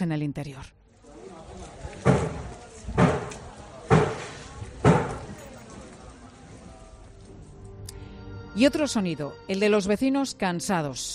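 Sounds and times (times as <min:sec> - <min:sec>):
speech: 0:00.0 - 0:00.8, 0:08.6 - 0:11.1
hammers striking car windows: 0:02.0 - 0:05.3.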